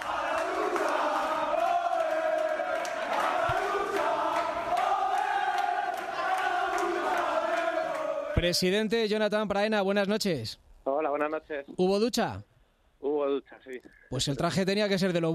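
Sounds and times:
locker room team cheering and chanting, celebrating a promotion: 0.0s - 8.6s
speech: 8.4s - 12.5s, 13.1s - 15.3s.

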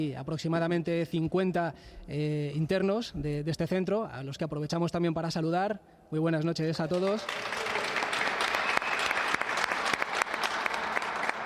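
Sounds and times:
speech: 0.0s - 7.7s
audience applause in sports hall: 6.9s - 11.4s.

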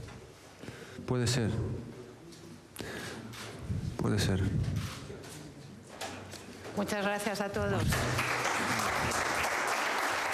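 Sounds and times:
speech: 1.1s - 1.9s, 4.0s - 4.9s, 6.8s - 8.3s
journalists applauding Zinedine Zidane at a press conference: 7.8s - 10.3s.

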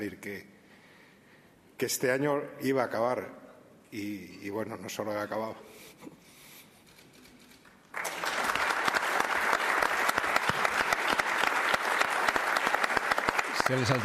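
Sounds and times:
speech: 0.0s - 0.6s, 1.8s - 6.2s, 13.7s - 14.0s
audience applause in a hall: 7.9s - 14.0s.

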